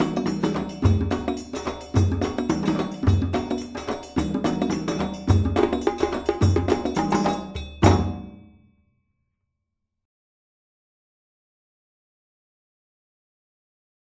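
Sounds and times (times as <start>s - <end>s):
djembe build-up: 0.0s - 8.4s.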